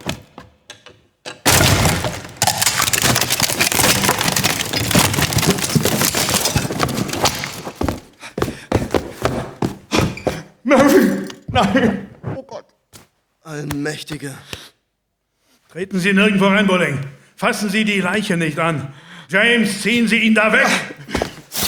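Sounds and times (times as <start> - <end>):
door being broken open: 1.3 - 8.1
wood crashing, cracking and splintering: 1.4 - 8.2
scattered thuds: 1.4 - 10.2
speech: 11.6 - 12.0, 13.6 - 14.7, 15.7 - 21.2.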